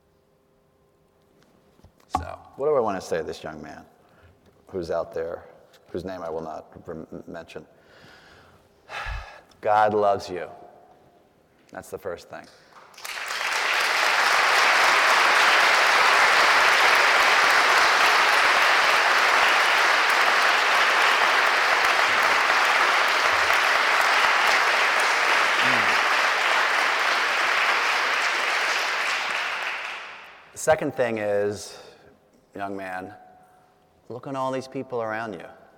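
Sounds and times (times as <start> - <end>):
speech: 2.2 - 4.0, 4.7 - 8.0, 9.6 - 10.6, 11.7 - 12.6, 30.6 - 31.8, 32.5 - 33.2, 34.1 - 35.6
large audience applause: 12.8 - 30.4.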